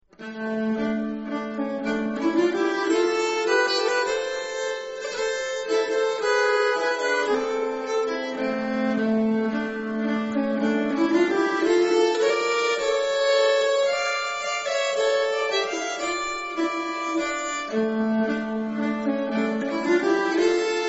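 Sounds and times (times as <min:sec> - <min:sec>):
nyckelharpa playing a wedding march: 0:00.2 - 0:20.8.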